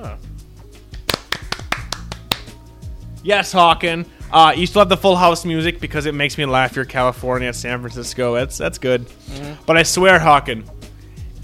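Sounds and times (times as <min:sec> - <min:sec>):
hand clapping: 0:00.9 - 0:02.6
speech: 0:03.2 - 0:10.8.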